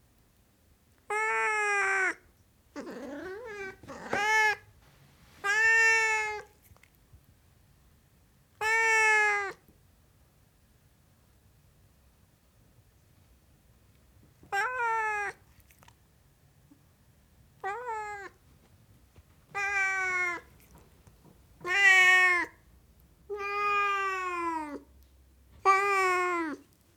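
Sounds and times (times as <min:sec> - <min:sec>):
Siamese cat meowing: 0:01.1 - 0:02.2, 0:02.8 - 0:04.7, 0:05.4 - 0:06.6, 0:08.6 - 0:09.6, 0:14.5 - 0:15.4, 0:17.6 - 0:18.4, 0:19.5 - 0:20.7, 0:21.6 - 0:22.6, 0:23.3 - 0:24.9, 0:25.6 - 0:26.7.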